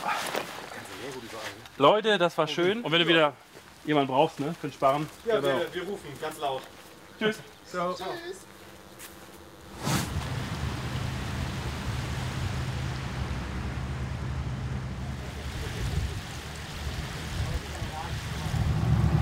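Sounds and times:
speech: 1.8 - 9.1
boat engine leaving the Elbe side canal onto the river Elbe: 8.6 - 19.1
water noise from a boat on the river Elbe: 9.8 - 19.1.

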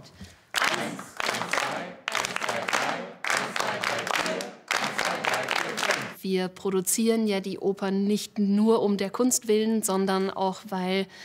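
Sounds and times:
group clapping together in time during a rhythm exercise: 0.3 - 6.2
speech: 6.2 - 11.2.

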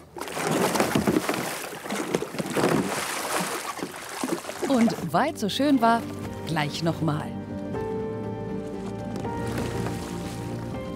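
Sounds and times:
kayak capsizing and rolling back upright in splashing water: 0.0 - 5.4, 8.5 - 10.9
speech: 4.7 - 7.3.

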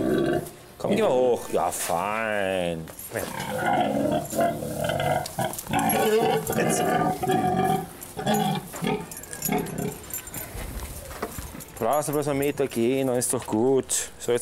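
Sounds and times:
pregnant sow grunting: 0.0 - 1.1, 3.2 - 10.4
speech: 0.8 - 9.8, 11.8 - 14.4.

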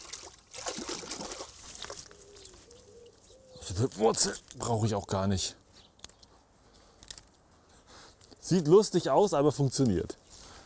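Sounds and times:
water rinsing over plant roots before winter storage: 0.0 - 3.2
speech: 3.7 - 5.6, 8.5 - 10.2.

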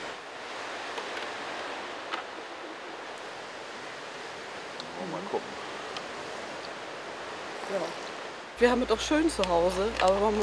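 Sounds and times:
sea waves at the shore: 0.0 - 10.4
speech: 5.0 - 5.7, 7.7 - 10.4.

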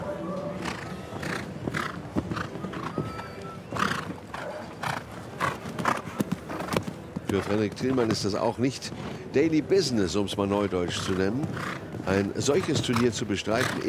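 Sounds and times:
horse hooves on turf on show jumping course: 0.3 - 13.8
horse snorting: 0.6 - 2.9, 3.8 - 7.6, 11.0 - 13.8
speech: 7.3 - 13.8.

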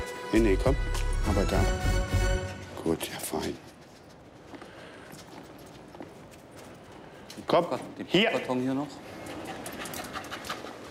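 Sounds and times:
speech: 0.3 - 2.2, 2.8 - 3.7, 7.5 - 9.1
search dog panting: 9.0 - 10.8.

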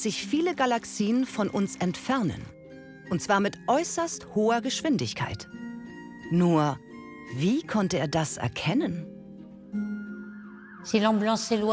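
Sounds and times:
speech: 0.0 - 5.6, 6.3 - 9.1, 10.8 - 11.7
ambulance siren passing with Doppler effect: 9.8 - 11.7.

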